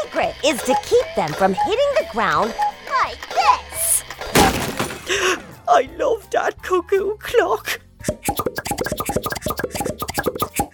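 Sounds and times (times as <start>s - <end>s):
speech: 0.2s - 3.1s, 5.1s - 7.8s
popcorn popping: 8.1s - 10.7s.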